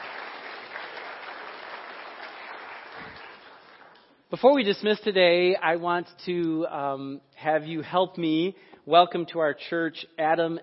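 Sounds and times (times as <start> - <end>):
audience clapping: 0.0 - 4.3
speech: 4.3 - 10.6.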